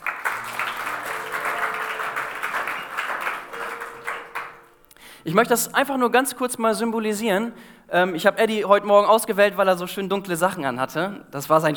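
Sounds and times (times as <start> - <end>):
audience applause: 0.0 - 4.9
speech: 5.2 - 11.7.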